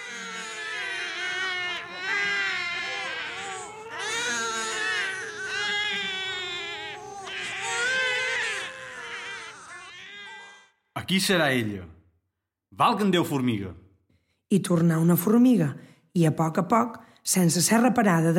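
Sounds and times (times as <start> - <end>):
small children crying inside a cave: 0.0 - 10.7
speech: 11.1 - 12.0, 12.8 - 13.8, 14.5 - 18.3.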